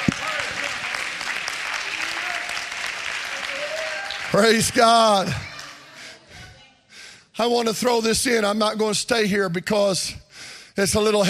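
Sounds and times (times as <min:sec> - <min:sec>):
audience clapping hands: 0:00.0 - 0:06.1
speech: 0:04.3 - 0:05.5, 0:07.4 - 0:10.2, 0:10.8 - 0:11.2.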